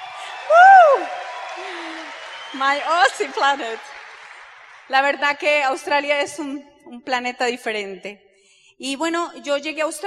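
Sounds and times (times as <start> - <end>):
person whooping: 0.0 - 2.6
crowd applause and cheering: 0.0 - 5.6
speech: 0.5 - 3.9, 4.9 - 8.2, 8.8 - 10.0.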